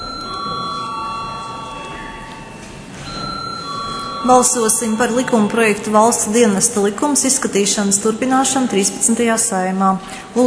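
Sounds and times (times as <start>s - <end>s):
parliament voting bell: 0.0s - 8.7s
speech: 4.2s - 10.4s.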